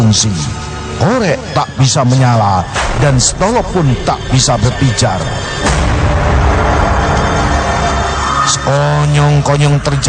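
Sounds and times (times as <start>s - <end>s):
speech: 0.0s - 6.2s, 8.5s - 10.0s
lightning strike thunder effect: 2.8s - 8.2s.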